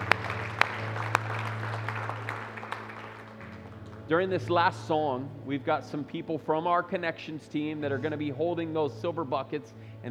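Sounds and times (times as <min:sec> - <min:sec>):
audience clapping: 0:00.0 - 0:04.2
speech: 0:04.1 - 0:10.1.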